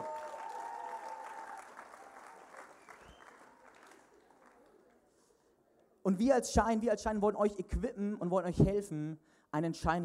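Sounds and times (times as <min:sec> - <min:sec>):
audience applause: 0:00.0 - 0:05.0
speech: 0:06.1 - 0:10.0.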